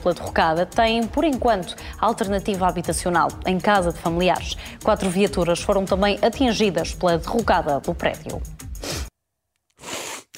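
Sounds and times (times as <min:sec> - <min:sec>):
speech: 0:00.0 - 0:09.0
breathy nasal sniffs: 0:08.7 - 0:09.1, 0:09.7 - 0:10.3.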